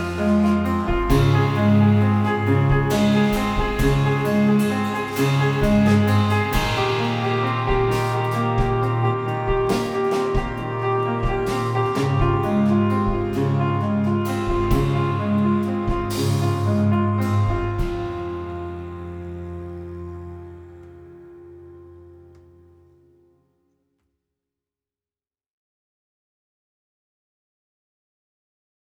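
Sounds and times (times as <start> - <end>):
piano piece: 0.0 - 23.0.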